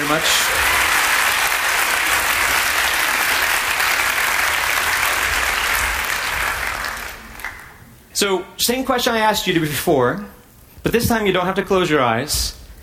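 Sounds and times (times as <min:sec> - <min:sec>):
crowd applauding: 0:00.0 - 0:07.8
speech: 0:00.1 - 0:00.7, 0:08.2 - 0:12.6.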